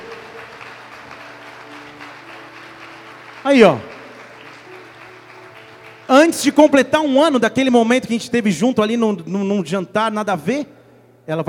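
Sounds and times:
audience applause: 0.0s - 6.8s
speech: 3.4s - 3.9s, 6.2s - 11.4s.

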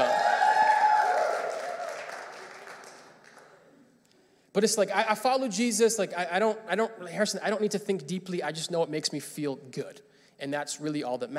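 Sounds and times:
audience clapping hands: 0.0s - 4.0s
speech: 4.6s - 11.3s.

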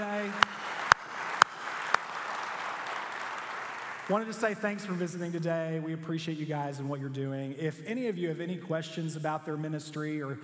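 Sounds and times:
audience applause: 0.0s - 4.4s
speech: 4.1s - 10.4s.

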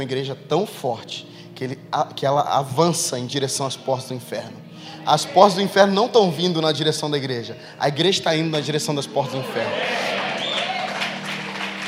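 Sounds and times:
speech: 0.0s - 10.2s
audience applause in church: 9.6s - 11.8s.

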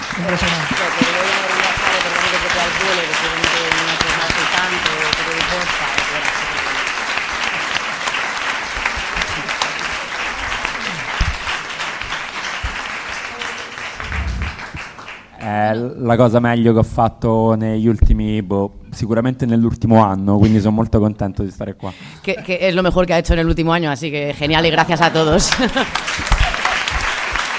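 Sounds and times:
audience applause: 0.0s - 15.4s, 25.5s - 27.5s
speech: 0.2s - 1.2s, 15.5s - 26.4s
laughter: 25.4s - 26.9s.

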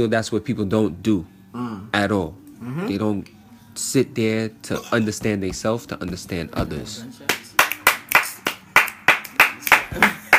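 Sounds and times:
speech: 0.0s - 7.3s
hand clapping: 7.2s - 10.3s.

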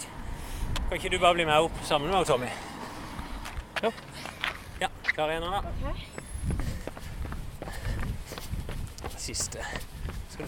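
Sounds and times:
constant noise: 0.0s - 10.4s
speech: 0.9s - 2.7s, 3.8s - 6.6s, 9.3s - 10.4s
light running footsteps during a training session: 2.9s - 10.4s.

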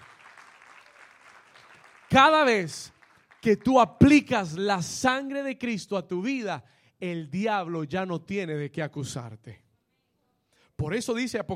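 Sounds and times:
audience applause: 0.0s - 3.7s
speech: 2.1s - 9.6s, 10.8s - 11.5s.

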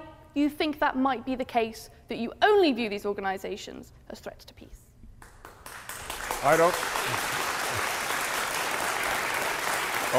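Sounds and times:
speech: 0.4s - 4.8s, 6.4s - 7.3s
audience applause: 5.3s - 10.1s.

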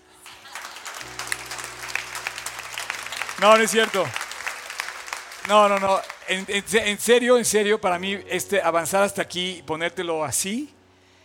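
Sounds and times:
audience applause: 0.0s - 7.0s
speech: 3.4s - 4.2s, 5.5s - 10.8s.

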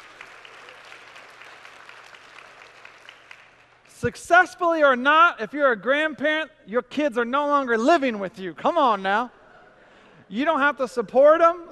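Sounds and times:
audience applause for grandparents: 0.0s - 3.9s
speech: 4.0s - 9.4s, 10.3s - 11.7s.

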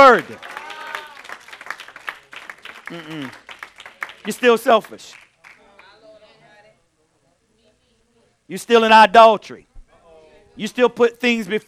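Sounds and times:
speech: 0.0s - 0.6s, 2.9s - 3.4s, 4.2s - 5.2s, 8.5s - 9.7s, 10.6s - 11.6s
audience clapping: 0.0s - 5.9s.

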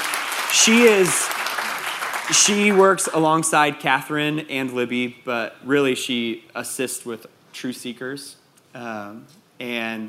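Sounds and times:
audience clapping: 0.0s - 3.3s
speech: 0.5s - 1.4s, 2.3s - 10.0s.

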